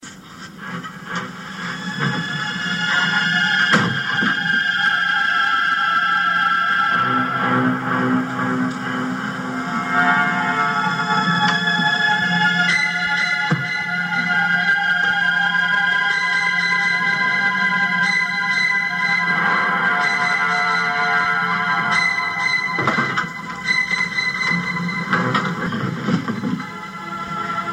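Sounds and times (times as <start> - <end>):
creepy theme music: 0.4 - 27.7.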